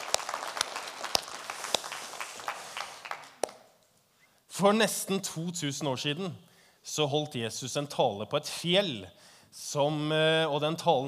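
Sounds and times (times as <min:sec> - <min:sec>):
audience applause: 0:00.0 - 0:03.5
speech: 0:04.6 - 0:11.0.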